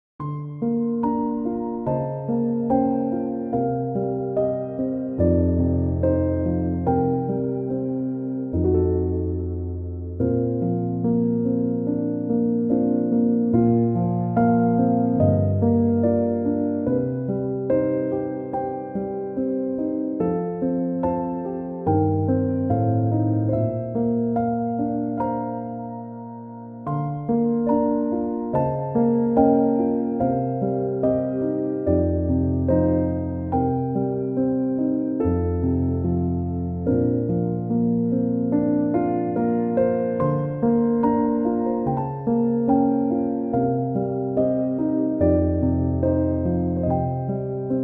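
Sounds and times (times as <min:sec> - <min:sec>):
piano instrumental: 0:00.2 - 0:47.8.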